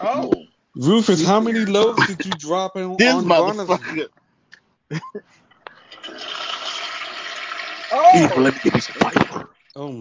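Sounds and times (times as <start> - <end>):
speech: 0.0 - 4.2, 4.9 - 5.4, 7.9 - 9.9
toilet flushing: 5.9 - 9.5.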